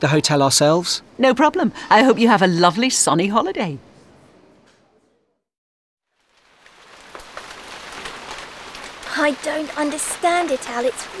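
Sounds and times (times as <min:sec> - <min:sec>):
speech: 0:00.0 - 0:03.9, 0:09.2 - 0:11.1
heavy rain pouring: 0:06.2 - 0:11.1.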